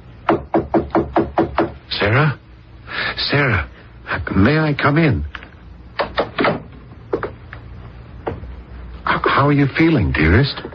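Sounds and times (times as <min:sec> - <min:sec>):
knocks on a bedroom door: 0:00.3 - 0:01.8
speech: 0:02.1 - 0:02.4, 0:03.0 - 0:05.3, 0:09.4 - 0:10.7.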